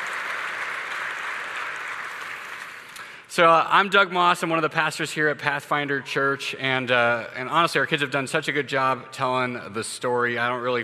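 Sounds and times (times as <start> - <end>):
crowd applauding: 0.0 - 3.2
speech: 3.3 - 10.8.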